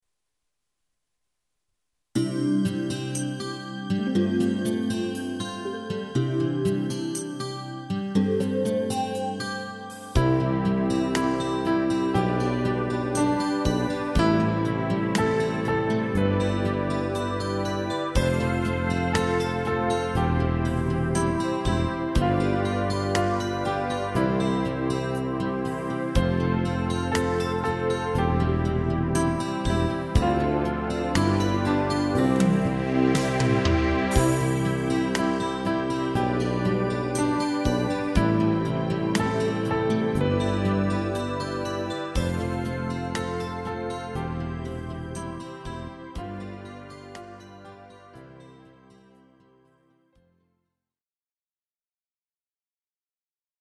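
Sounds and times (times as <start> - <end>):
flute: 2.2 - 44.2.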